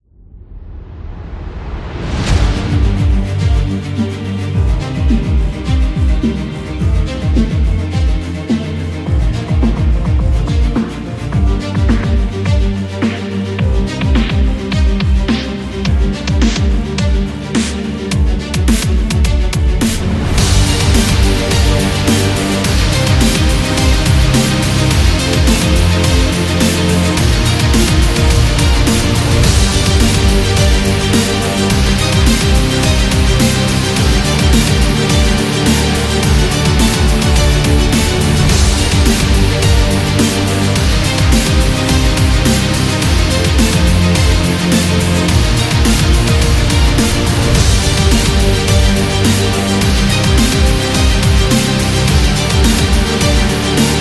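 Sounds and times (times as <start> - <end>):
epic dubstep music: 1.2 - 53.9.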